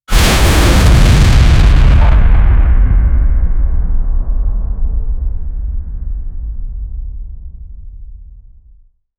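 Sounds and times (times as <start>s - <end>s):
explosion: 0.0s - 7.0s.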